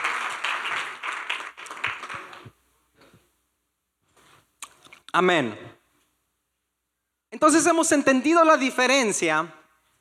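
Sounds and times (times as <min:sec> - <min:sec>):
audience applause: 0:00.0 - 0:02.5
speech: 0:05.2 - 0:05.7, 0:07.4 - 0:09.6.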